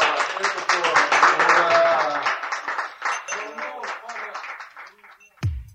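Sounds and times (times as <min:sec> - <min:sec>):
people cheering: 0:00.0 - 0:05.2
applause: 0:00.0 - 0:05.4.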